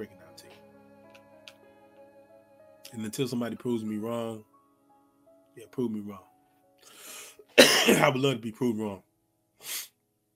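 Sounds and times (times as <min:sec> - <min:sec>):
speech: 0:02.9 - 0:04.5, 0:05.6 - 0:07.0, 0:07.8 - 0:09.8
person coughing: 0:07.6 - 0:08.2.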